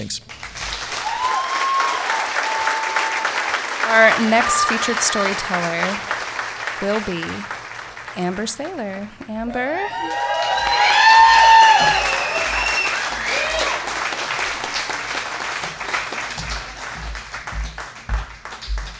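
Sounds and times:
speech: 0.0s - 0.5s, 3.9s - 6.2s, 6.8s - 7.6s, 8.2s - 10.3s, 11.8s - 12.1s
crowd applause: 0.3s - 18.9s
whoops and high cheers: 0.9s - 5.4s, 9.8s - 13.9s.

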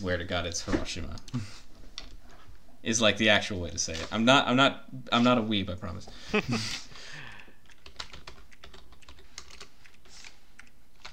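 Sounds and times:
speech: 0.0s - 1.7s, 2.8s - 6.9s
typing on a computer keyboard: 7.3s - 11.1s.

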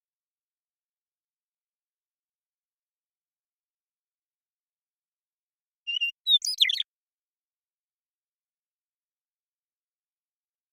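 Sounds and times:
western meadowlark singing: 5.9s - 6.8s.

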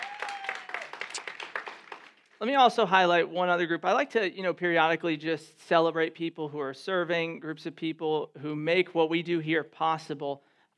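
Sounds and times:
audience applause: 0.0s - 2.3s
speech: 2.4s - 10.7s.

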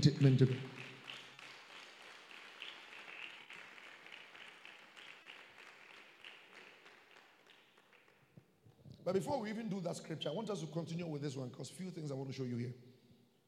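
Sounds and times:
speech: 0.0s - 0.7s, 9.0s - 12.9s
church congregation clapping: 0.0s - 8.5s.

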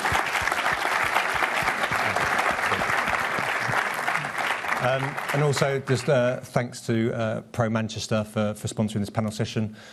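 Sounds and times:
audience round of applause: 0.0s - 6.3s
speech: 4.8s - 9.9s.

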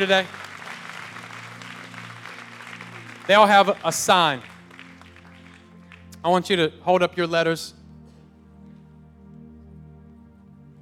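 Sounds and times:
speech: 0.0s - 0.4s, 3.3s - 4.5s, 6.2s - 7.8s
audience clapping hands: 0.0s - 6.4s.

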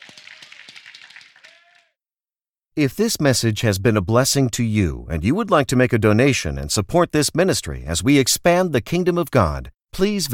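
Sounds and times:
audience hand clapping: 0.0s - 2.0s
voices calling out: 0.0s - 2.0s
speech: 2.8s - 10.3s.

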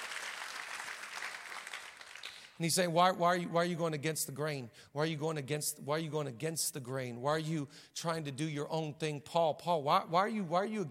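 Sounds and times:
audience clapping: 0.0s - 2.6s
speech: 2.6s - 10.8s.

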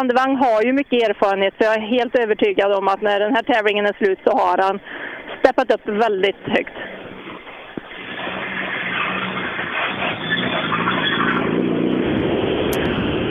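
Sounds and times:
speech: 0.0s - 7.0s
rally car roaring past: 6.8s - 13.2s.

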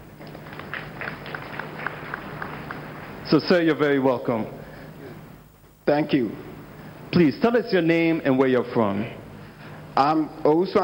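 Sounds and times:
small group audience clapping: 0.0s - 3.3s
speech: 3.3s - 4.6s, 5.9s - 6.5s, 7.1s - 9.2s, 10.0s - 10.8s.

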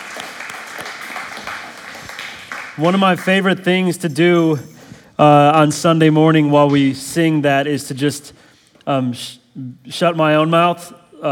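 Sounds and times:
audience applause: 0.0s - 4.4s
speech: 2.8s - 11.3s.

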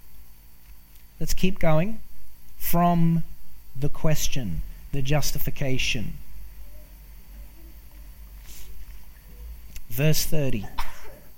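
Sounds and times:
speech: 1.2s - 2.0s, 2.6s - 6.2s, 10.0s - 10.8s
sneeze: 10.7s - 11.3s.

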